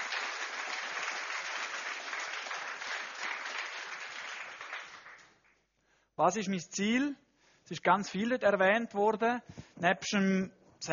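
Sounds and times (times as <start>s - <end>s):
audience applause: 0.0s - 5.6s
speech: 6.2s - 10.9s.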